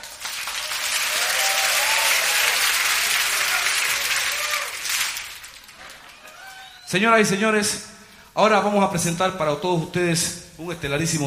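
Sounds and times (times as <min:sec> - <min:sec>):
audience applause: 0:00.0 - 0:06.9
speech: 0:06.9 - 0:11.2.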